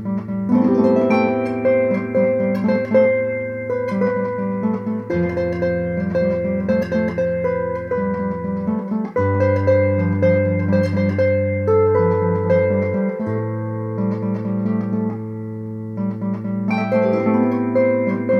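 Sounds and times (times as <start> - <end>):
electric harp: 0.0 - 18.3.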